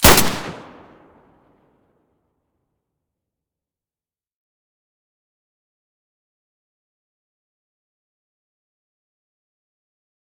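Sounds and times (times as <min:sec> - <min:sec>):
M9A3 pistol muzzle blast: 0:00.0 - 0:01.2.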